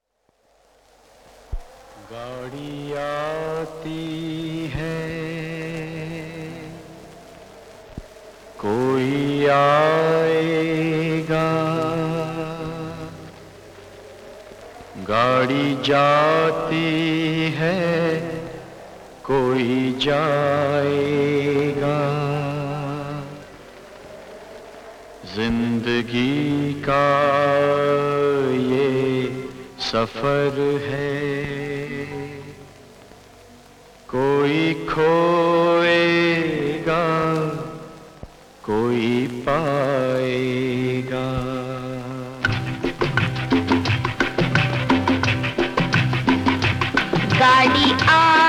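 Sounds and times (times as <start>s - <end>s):
duet: 1.2s - 48.4s.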